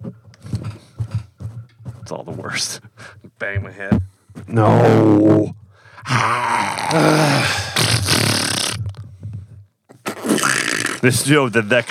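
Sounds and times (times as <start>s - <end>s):
speech: 2.1s - 5.6s, 6.2s - 7.6s, 11.0s - 11.8s
fart: 6.1s - 9.0s, 9.9s - 11.8s.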